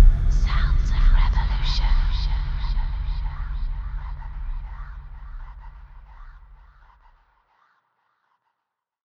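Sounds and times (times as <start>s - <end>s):
kick drum: 0.0s - 6.1s.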